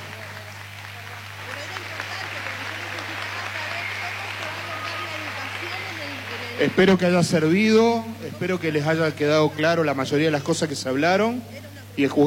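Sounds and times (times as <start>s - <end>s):
applause: 0.0s - 8.6s
speech: 6.6s - 12.2s.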